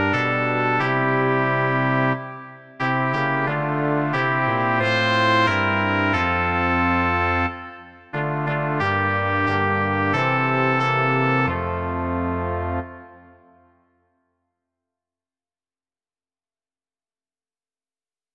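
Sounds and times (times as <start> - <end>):
brass quartet: 0.0 - 13.8.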